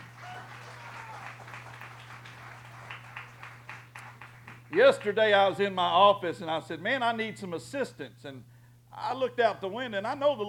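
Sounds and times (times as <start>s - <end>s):
crowd applauding: 0.0s - 5.1s
low electrical hum: 0.0s - 10.4s
speech: 4.7s - 10.4s.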